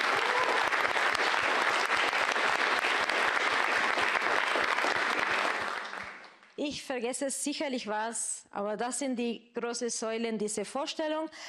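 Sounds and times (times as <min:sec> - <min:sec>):
audience applause: 0:00.0 - 0:06.4
speech: 0:06.7 - 0:11.4.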